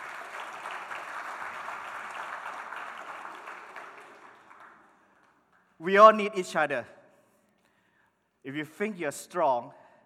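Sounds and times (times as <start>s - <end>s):
audience applause: 0.0s - 5.4s
speech: 5.8s - 7.0s, 8.4s - 9.8s.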